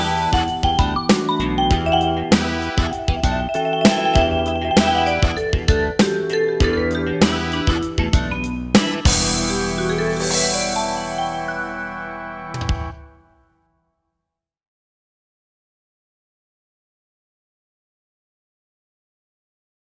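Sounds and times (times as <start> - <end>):
rock funk music: 0.0 - 13.3.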